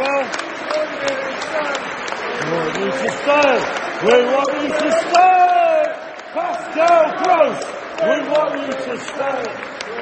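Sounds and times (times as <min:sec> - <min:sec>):
football team applauding the fans: 0:00.0 - 0:10.0
speech: 0:02.9 - 0:05.5, 0:06.8 - 0:10.0.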